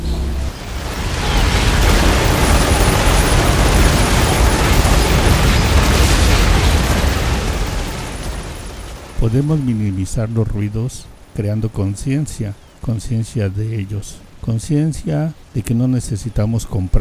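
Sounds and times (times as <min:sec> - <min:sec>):
industrial din of rumbling machinery and motors: 0:00.0 - 0:12.9
faint high whine: 0:00.0 - 0:16.9
speech: 0:09.3 - 0:16.9.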